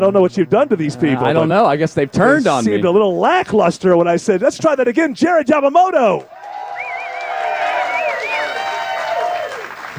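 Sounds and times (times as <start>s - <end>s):
speech: 0.0s - 6.4s
manufactured audience applause: 6.3s - 9.9s.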